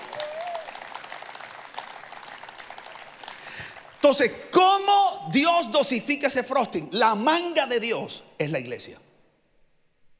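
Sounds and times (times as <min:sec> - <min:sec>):
audience applause: 0:00.0 - 0:04.0
speech: 0:04.0 - 0:09.1.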